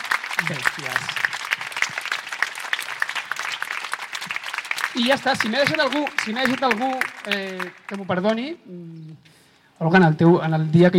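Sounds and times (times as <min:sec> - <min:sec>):
audience applause: 0:00.0 - 0:08.4
speech: 0:00.4 - 0:01.3, 0:04.9 - 0:10.9.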